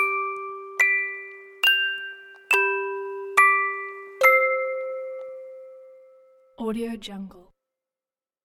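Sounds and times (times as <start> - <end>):
music box lullaby: 0.0 - 6.6.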